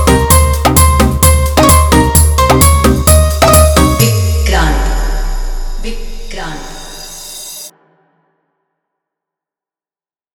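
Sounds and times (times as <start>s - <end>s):
background music: 0.0s - 7.4s.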